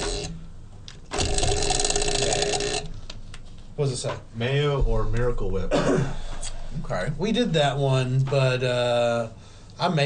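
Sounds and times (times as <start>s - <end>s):
prize wheel spinning with clicks: 0.0s - 0.4s, 1.1s - 2.9s
speech: 3.8s - 10.0s.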